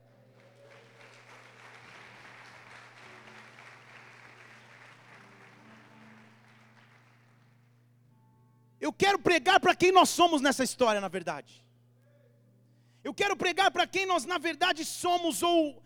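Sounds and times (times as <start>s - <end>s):
audience applause: 0.0s - 7.8s
speech: 8.8s - 11.7s, 13.0s - 15.8s.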